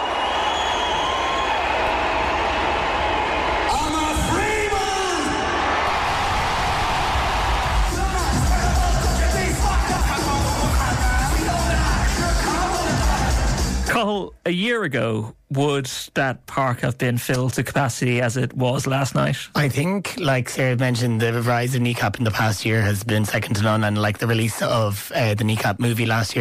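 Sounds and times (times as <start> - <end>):
crowd cheering at outdoor concert in Fairview Park: 0.0 - 13.9
speech: 14.8 - 26.4.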